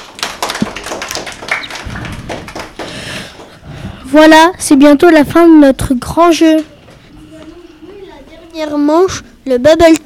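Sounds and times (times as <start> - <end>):
audience applause: 0.0 - 3.6
speech: 4.1 - 6.7, 8.6 - 10.0.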